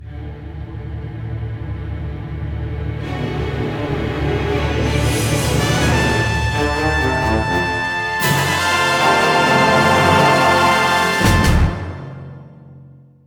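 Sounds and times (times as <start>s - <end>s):
cinematic win sound: 3.0s - 12.0s.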